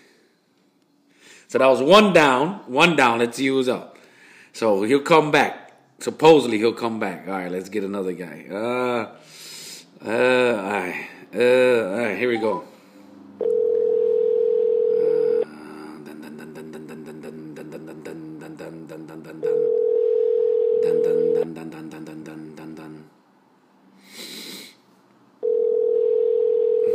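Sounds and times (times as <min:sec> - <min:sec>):
speech: 0:01.5 - 0:03.9, 0:04.6 - 0:12.7, 0:13.4 - 0:13.6
unanswered outgoing phone call ringback tones: 0:12.4 - 0:12.7, 0:13.4 - 0:15.4, 0:19.4 - 0:21.4, 0:25.4 - 0:26.9.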